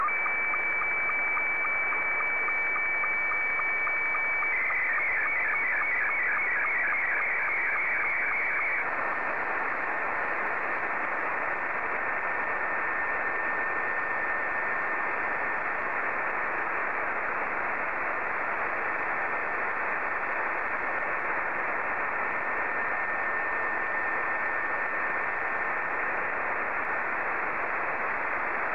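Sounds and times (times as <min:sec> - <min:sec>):
SSTV Scottie 2 signal: 0:00.0 - 0:28.7.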